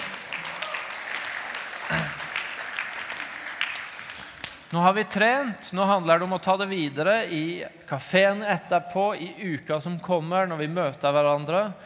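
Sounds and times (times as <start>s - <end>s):
audience applause: 0.0s - 4.7s
speech: 1.9s - 2.2s, 4.7s - 11.8s.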